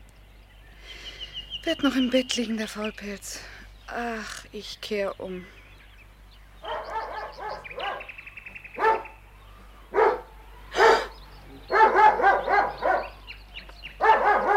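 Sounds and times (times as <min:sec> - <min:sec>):
low steady hum: 0:00.0 - 0:14.5
speech: 0:01.6 - 0:05.6
dog barking: 0:06.6 - 0:08.2, 0:08.8 - 0:09.2, 0:09.9 - 0:13.2, 0:14.0 - 0:14.5.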